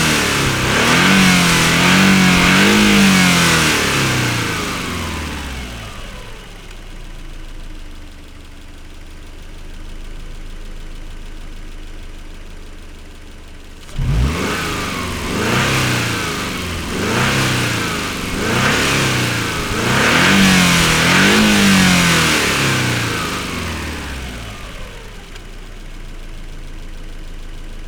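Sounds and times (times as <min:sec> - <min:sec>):
Subaru Legacy 2.5 GT engine starting, idling and revving: 0:00.0 - 0:06.8, 0:13.8 - 0:25.8.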